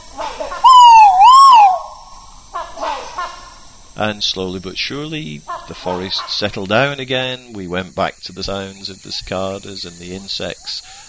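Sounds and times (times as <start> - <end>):
Argus pheasant calling: 0.0 - 4.1
rhinoceros hornbills calling in a tree: 0.0 - 6.6
speech: 4.0 - 11.0.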